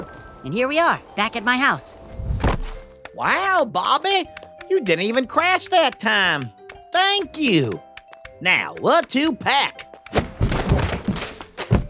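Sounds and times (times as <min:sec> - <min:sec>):
speech: 0:00.4 - 0:02.0, 0:03.2 - 0:07.8, 0:08.4 - 0:09.8
person bumping into a closet door: 0:10.2 - 0:11.8.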